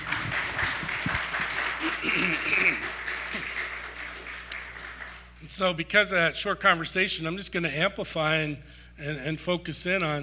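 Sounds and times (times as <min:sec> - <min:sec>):
audience applause: 0:00.0 - 0:05.3
speech: 0:05.5 - 0:10.2.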